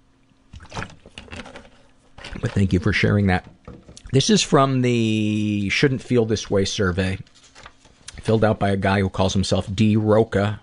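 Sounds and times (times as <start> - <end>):
person swigging water: 0.5 - 4.2
speech: 2.3 - 7.3, 8.2 - 10.6.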